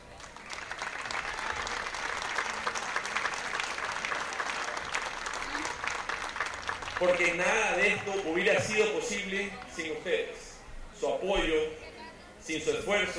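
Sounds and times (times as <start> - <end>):
audience applause: 0.0 - 8.3
speech: 7.0 - 10.4, 11.0 - 11.8, 12.4 - 13.1.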